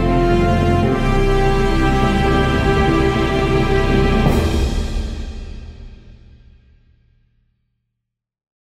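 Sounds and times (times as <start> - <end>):
musical stinger: 0.0 - 5.6.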